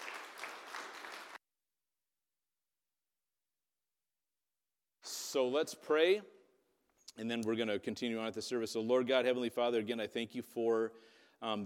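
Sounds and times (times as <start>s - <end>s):
audience applause: 0.0s - 1.4s
speech: 5.3s - 6.4s, 7.2s - 11.6s.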